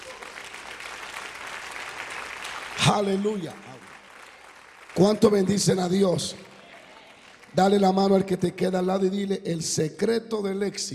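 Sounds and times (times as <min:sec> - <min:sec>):
audience applause: 0:00.0 - 0:07.8
speech: 0:02.9 - 0:03.8, 0:05.0 - 0:06.5, 0:07.6 - 0:10.9.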